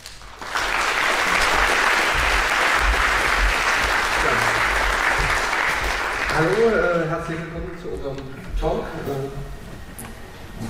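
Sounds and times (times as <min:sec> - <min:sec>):
audience applause: 0:00.0 - 0:07.6
speech: 0:06.4 - 0:09.6.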